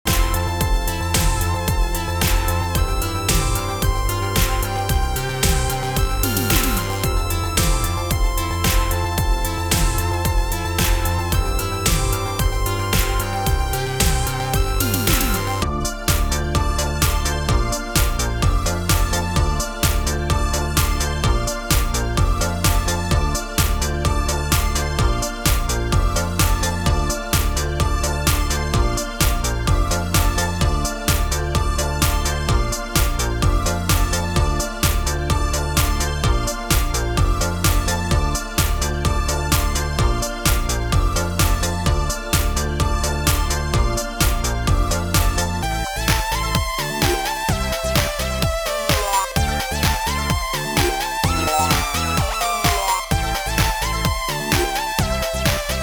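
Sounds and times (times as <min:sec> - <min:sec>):
Roland JunoDS88 retro EDM: 0:00.0 - 0:55.8.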